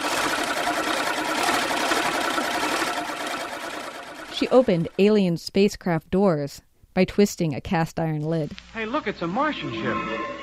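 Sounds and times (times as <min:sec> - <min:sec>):
hand-cranked egg beater whirring imitating a lawnmower engine: 0:00.0 - 0:05.3
speech: 0:04.4 - 0:10.4.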